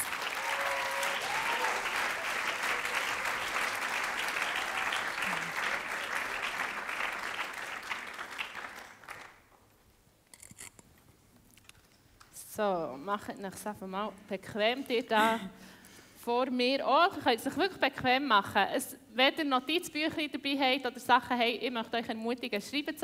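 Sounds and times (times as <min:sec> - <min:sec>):
audience applause: 0:00.0 - 0:09.4
speech: 0:12.6 - 0:23.0.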